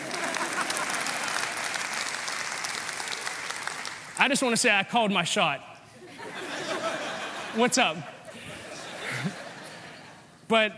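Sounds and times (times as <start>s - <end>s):
laughter: 0.0s - 1.8s, 6.0s - 10.3s
audience clapping: 0.0s - 4.6s
speech: 4.2s - 5.7s, 7.6s - 8.1s, 10.5s - 10.7s.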